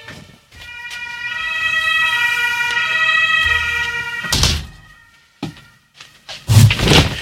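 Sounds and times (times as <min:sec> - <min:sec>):
fire truck sirens wailing from a fire station beside a radio studio: 0:00.4 - 0:06.0.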